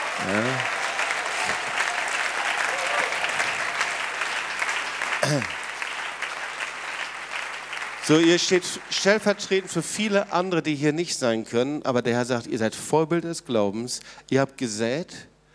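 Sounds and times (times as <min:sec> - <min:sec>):
audience applause: 0:00.0 - 0:10.5
speech: 0:00.2 - 0:00.8, 0:05.3 - 0:05.6, 0:08.1 - 0:15.3
brief whoop: 0:00.5 - 0:03.4.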